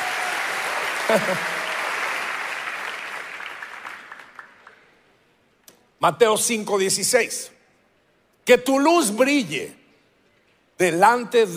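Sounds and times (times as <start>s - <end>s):
audience applauding: 0.0s - 4.9s
speech: 1.1s - 1.6s, 6.0s - 7.6s, 8.5s - 9.8s, 10.8s - 11.5s.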